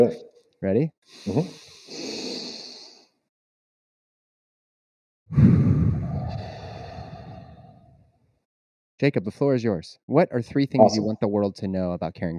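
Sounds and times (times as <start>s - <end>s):
speech: 0.0s - 2.2s, 5.3s - 5.6s, 9.0s - 12.3s
deep breath exhaled audibly into the microphone: 1.1s - 3.1s, 5.3s - 8.1s.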